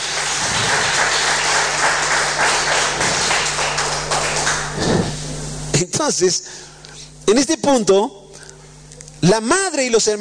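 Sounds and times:
church audience applause: 0:00.0 - 0:05.1
speech: 0:06.0 - 0:06.7, 0:07.3 - 0:08.2, 0:09.2 - 0:10.1.

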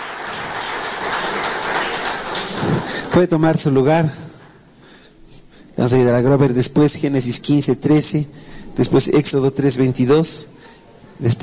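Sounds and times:
audience applauding: 0:00.0 - 0:03.4
speech: 0:03.2 - 0:04.3, 0:05.8 - 0:11.4.

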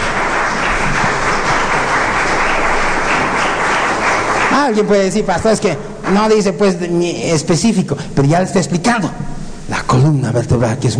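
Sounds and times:
audience applause: 0:00.0 - 0:06.7
speech: 0:04.6 - 0:10.9.

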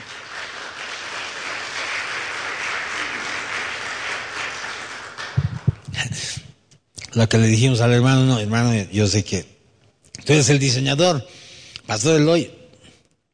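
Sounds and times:
audience applause: 0:00.0 - 0:05.9
speech: 0:07.2 - 0:09.5, 0:10.3 - 0:12.6.

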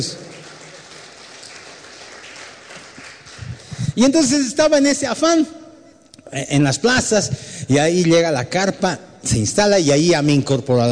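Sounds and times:
speech: 0:00.0 - 0:00.3, 0:04.0 - 0:05.6, 0:06.3 - 0:10.9
audience applause: 0:00.0 - 0:04.0.

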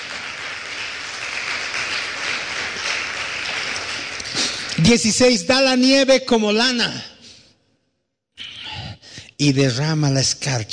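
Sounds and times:
audience applause: 0:00.0 - 0:04.8
speech: 0:04.8 - 0:07.1, 0:09.4 - 0:10.7.

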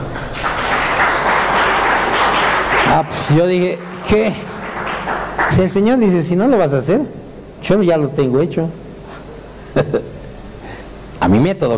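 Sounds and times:
audience applause: 0:00.0 - 0:06.3
speech: 0:02.9 - 0:04.5, 0:05.5 - 0:08.8, 0:09.8 - 0:10.1, 0:11.2 - 0:11.7.

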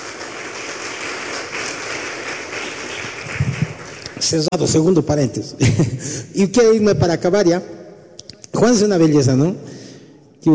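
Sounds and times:
audience applause: 0:00.0 - 0:04.6
speech: 0:04.3 - 0:07.8, 0:08.6 - 0:09.7.

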